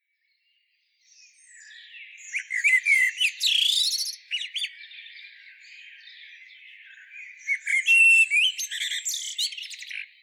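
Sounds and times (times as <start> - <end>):
common blackbird scratchy twittering with brief whistles: 1.6 - 4.9, 6.8 - 10.1.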